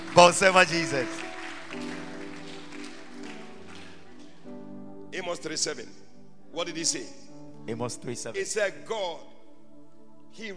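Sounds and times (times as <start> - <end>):
audience clapping: 0.0 - 4.6
speech: 0.2 - 2.0, 5.2 - 9.3, 10.3 - 10.5.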